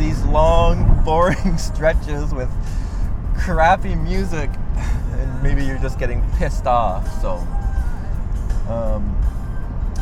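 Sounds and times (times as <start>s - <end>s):
car driving along a road, engine and tyre rumble: 0.0s - 9.9s
speech: 1.1s - 2.8s, 3.4s - 7.6s, 8.7s - 9.4s.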